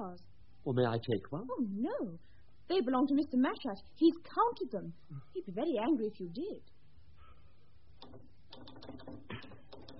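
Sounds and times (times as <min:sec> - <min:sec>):
speech: 0:00.0 - 0:06.8, 0:08.1 - 0:09.6
low steady hum: 0:00.0 - 0:09.9
typing on a typewriter: 0:08.5 - 0:09.9.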